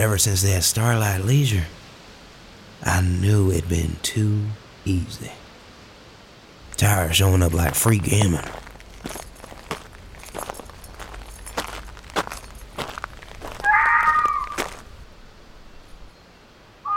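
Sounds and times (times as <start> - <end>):
speech: 0.0 - 1.8, 2.8 - 5.4, 6.8 - 9.2
crunching footsteps: 6.7 - 15.1
elk calling: 13.6 - 14.7.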